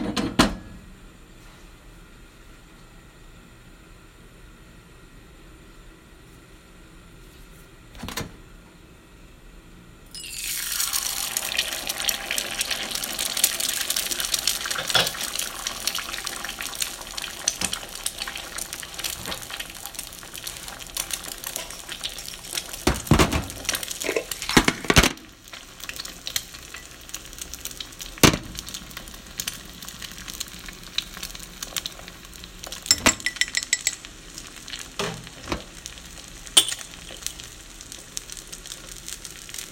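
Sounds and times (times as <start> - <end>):
sunny-side-up egg sizzling in a pan: 10.1 - 39.6.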